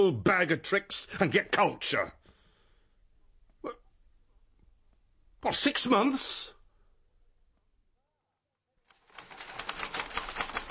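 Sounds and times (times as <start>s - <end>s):
speech: 0.0s - 2.2s, 5.4s - 6.6s
typing on a typewriter: 8.9s - 10.6s.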